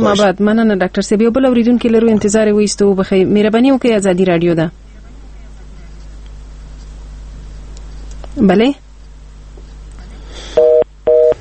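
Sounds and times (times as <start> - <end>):
speech: 0.0 - 4.8, 8.4 - 8.8
telephone busy tone beeps as a call fails to connect: 10.6 - 11.3.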